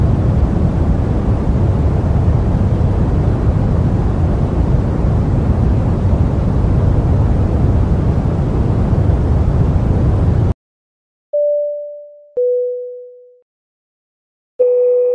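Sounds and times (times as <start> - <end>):
airplane cabin noise: 0.0 - 10.5
chime-like dings: 11.4 - 13.4, 14.6 - 15.1.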